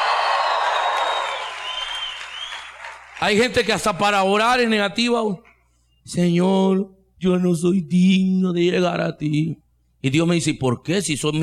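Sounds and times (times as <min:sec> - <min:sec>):
audience shouting and cheering for joy: 0:00.0 - 0:02.3
speech: 0:03.2 - 0:11.4.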